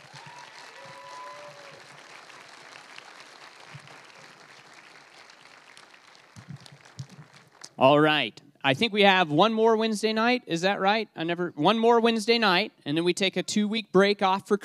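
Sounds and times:
audience applause: 0.0 - 7.8
speech: 7.8 - 14.6.

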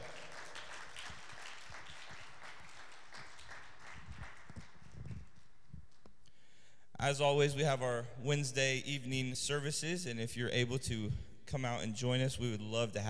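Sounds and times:
audience applause: 0.0 - 5.3
speech: 7.0 - 13.0.

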